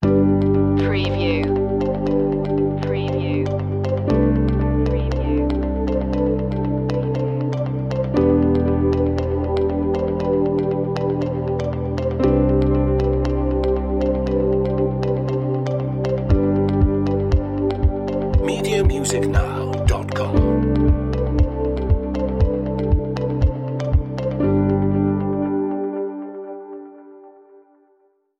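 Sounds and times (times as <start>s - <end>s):
corporate music: 0.0s - 27.1s.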